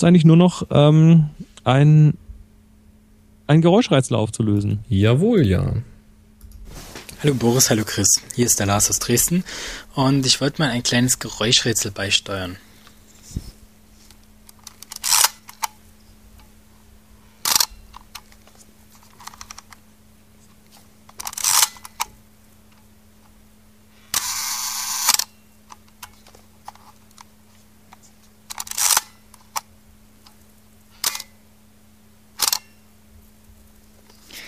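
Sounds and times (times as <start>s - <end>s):
speech: 0.0s - 2.2s, 3.5s - 5.9s, 7.2s - 12.6s
faint steady hum: 0.0s - 34.4s
Praktica MTL 5B camera shutter releases at 1/30 s, 1 s and bulb: 14.6s - 15.7s, 21.2s - 22.1s, 24.1s - 25.3s, 28.5s - 29.1s, 31.0s - 31.3s, 32.4s - 32.7s.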